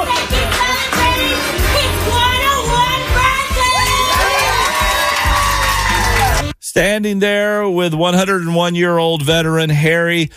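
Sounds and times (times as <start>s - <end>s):
crowd cheering in a standing ovation: 0.0s - 6.6s
speech: 6.8s - 10.3s.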